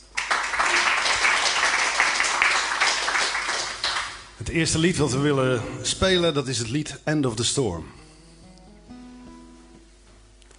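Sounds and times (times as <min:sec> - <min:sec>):
audience applause: 0:00.0 - 0:04.4
speech: 0:04.5 - 0:08.1.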